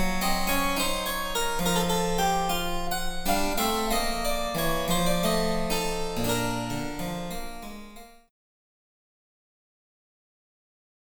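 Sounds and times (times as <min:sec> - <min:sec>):
harpsichord: 0:00.0 - 0:08.2.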